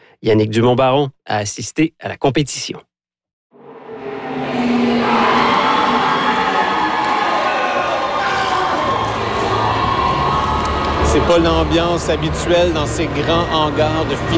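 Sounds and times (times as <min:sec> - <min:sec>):
speech: 0:00.2 - 0:02.9, 0:11.2 - 0:14.3
crowd of teenagers shouting and cheering at robot contest: 0:04.4 - 0:14.3.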